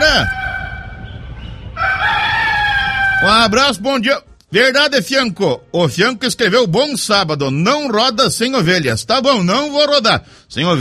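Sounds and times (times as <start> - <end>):
speech: 0.0 - 0.4, 3.2 - 10.7
rooster crowing: 0.0 - 3.6.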